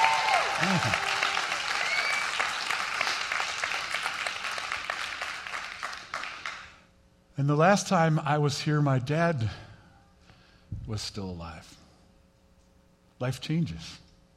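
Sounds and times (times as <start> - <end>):
audience applause: 0.0 - 6.8
speech: 0.6 - 1.1, 7.4 - 9.6, 10.9 - 11.8, 13.2 - 14.0.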